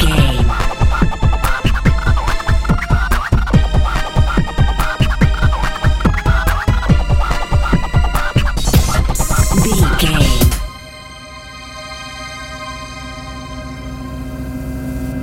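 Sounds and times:
dance pop music: 0.0 - 10.8.

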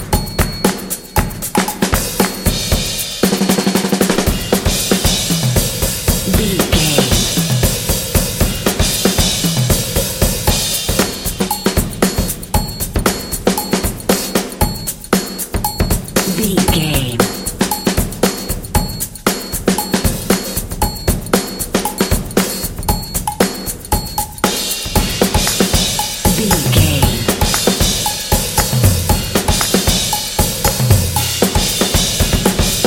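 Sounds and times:
hip funky drum beat: 0.0 - 32.8
percussion: 0.0 - 32.8
claps: 1.6 - 2.5, 25.4 - 28.8, 29.5 - 30.0.

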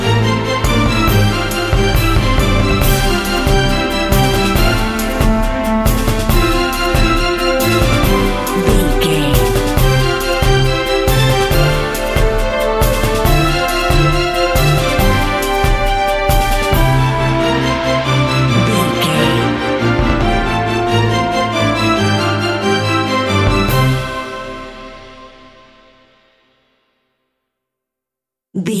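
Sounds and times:
orchestral happy proud anthem: 0.0 - 25.6.

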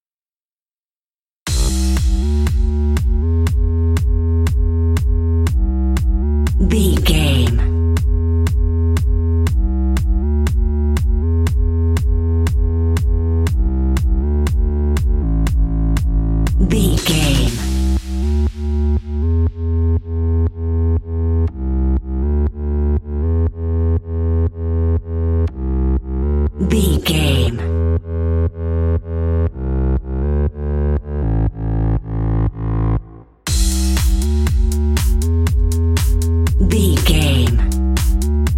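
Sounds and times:
bass guitar: 1.5 - 38.5
drums: 33.5 - 38.5.

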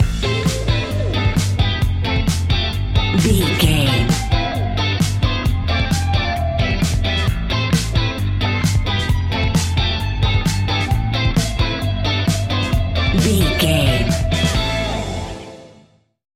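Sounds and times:
fast paced electronic dance music: 0.0 - 15.2.

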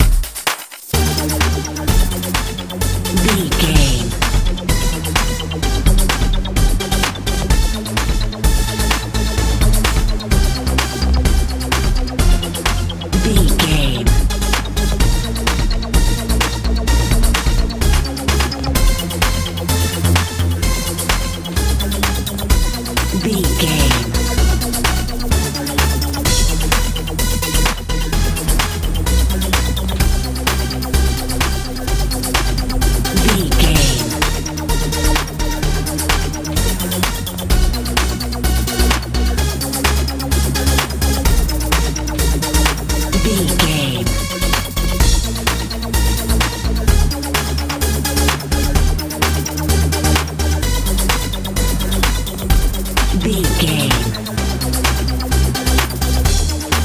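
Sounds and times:
euro dance music: 0.0 - 56.8.

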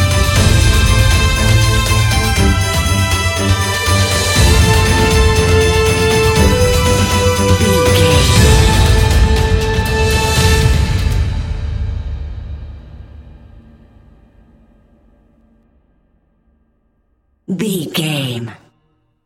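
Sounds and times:
cinematic epic orchestral Christmas music: 0.0 - 12.7.

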